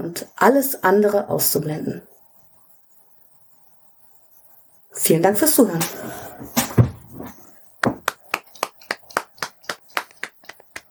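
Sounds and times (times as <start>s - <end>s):
speech: 0.0s - 2.1s, 5.0s - 6.6s
hand clapping: 7.8s - 10.8s.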